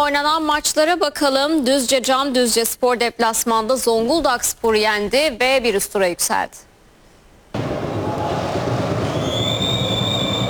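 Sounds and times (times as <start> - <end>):
speech: 0.0 - 6.7
crowd roar: 7.6 - 10.4
referee's first whistle: 7.6 - 10.4.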